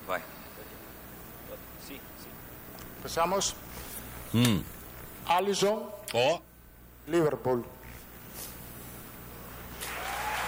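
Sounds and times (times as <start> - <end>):
quiet hiss: 0.0 - 10.4
speech: 0.1 - 0.4, 1.8 - 6.5, 7.1 - 7.8
applause of many hands clapping: 9.8 - 10.4.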